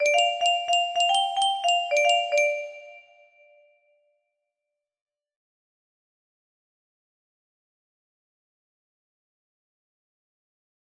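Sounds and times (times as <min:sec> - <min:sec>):
music box melody: 0:00.0 - 0:03.6.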